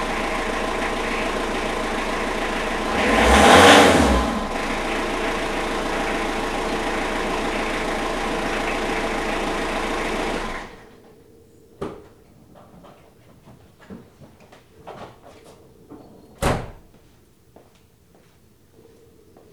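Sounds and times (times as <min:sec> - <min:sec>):
diesel engine starting in a garage: 0:00.0 - 0:10.9
door in a garage: 0:16.0 - 0:16.9.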